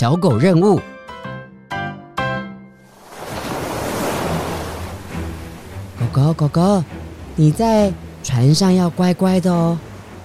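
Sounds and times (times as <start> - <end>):
speech: 0.0 - 0.9, 6.1 - 9.9
ocean waves at the seaside: 2.8 - 10.2.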